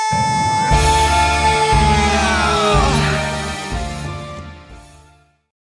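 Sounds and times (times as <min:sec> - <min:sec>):
rock singing: 0:00.1 - 0:04.2.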